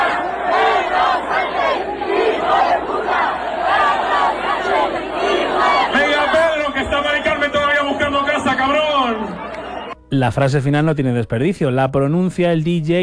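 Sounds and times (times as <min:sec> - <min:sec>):
thousands of young people chanting and singing at a festival: 0:00.0 - 0:10.0
speech: 0:10.1 - 0:13.0.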